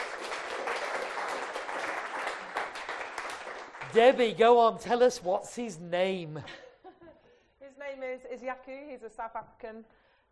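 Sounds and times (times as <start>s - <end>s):
audience applause welcoming a guest onto a show: 0.0s - 4.7s
speech: 3.9s - 6.6s, 8.4s - 10.3s.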